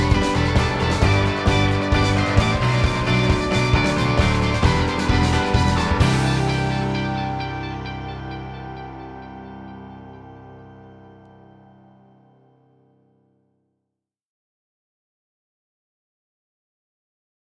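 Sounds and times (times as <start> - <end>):
instrumental music: 0.0 - 12.5.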